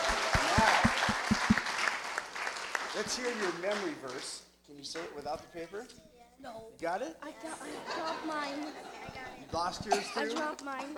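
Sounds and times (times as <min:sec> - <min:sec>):
audience applause: 0:00.0 - 0:04.2
speech: 0:03.0 - 0:10.9.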